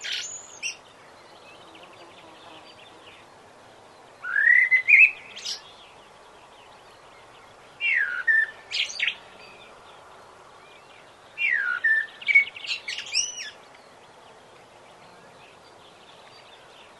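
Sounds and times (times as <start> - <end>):
common blackbird singing fluted whistles: 4.2 - 5.6, 7.8 - 9.1, 11.4 - 13.6.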